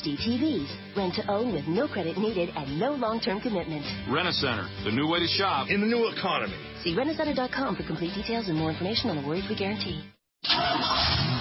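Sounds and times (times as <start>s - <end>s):
speech: 0.0s - 11.4s
car engine starting: 10.4s - 11.4s.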